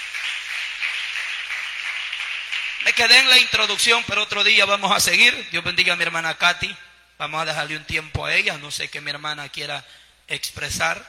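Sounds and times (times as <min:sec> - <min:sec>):
church congregation applauding during an afternoon service: 0:00.0 - 0:03.5
speech: 0:02.9 - 0:11.0.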